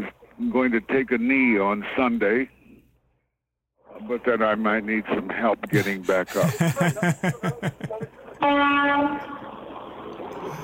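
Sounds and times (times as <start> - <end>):
speech: 0.0 - 2.6, 4.0 - 9.3
laughter: 5.7 - 8.4
car horn: 8.4 - 9.5.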